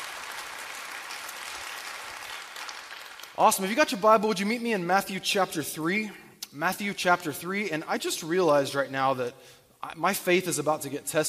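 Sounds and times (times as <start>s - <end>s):
church congregation applauding to welcome guests: 0.0s - 4.1s
speech: 3.4s - 11.2s.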